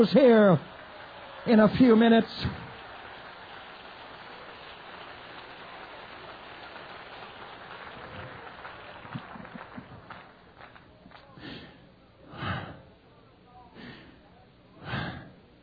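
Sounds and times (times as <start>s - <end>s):
speech: 0.0s - 0.7s, 1.4s - 2.6s
audience clapping: 0.0s - 11.6s.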